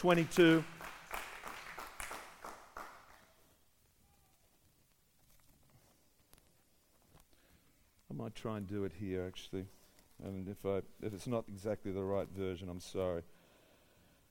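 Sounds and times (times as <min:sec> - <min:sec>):
speech: 0:00.0 - 0:00.8, 0:08.2 - 0:13.4
audience clapping: 0:00.0 - 0:03.5.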